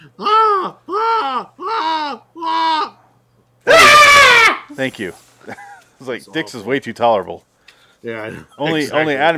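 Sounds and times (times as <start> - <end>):
woman screaming: 0.2 - 3.0, 3.7 - 4.7
speech: 4.8 - 9.3.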